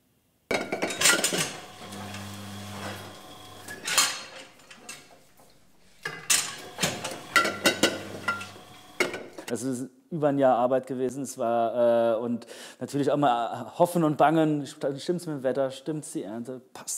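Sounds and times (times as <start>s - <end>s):
glass wine bottles clinking at a vineyard estate on an old manor farm: 0.5s - 9.5s
speech: 9.5s - 16.9s.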